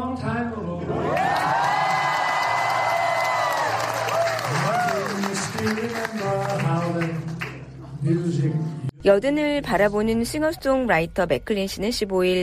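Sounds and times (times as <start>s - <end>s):
audience applause and cheering at dinner: 1.0s - 7.7s
speech: 8.0s - 12.4s.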